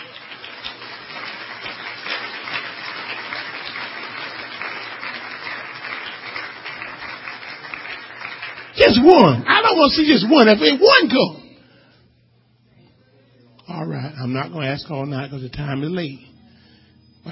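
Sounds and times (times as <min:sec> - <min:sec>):
crowd clapping: 0:00.0 - 0:11.3
speech: 0:08.9 - 0:11.4, 0:14.3 - 0:16.3.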